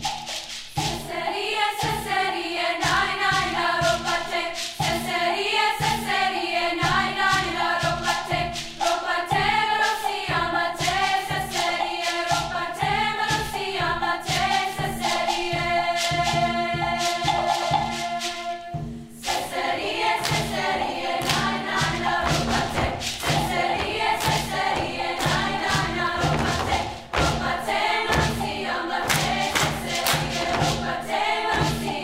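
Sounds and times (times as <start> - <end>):
treble choir singing: 0.1 - 32.0.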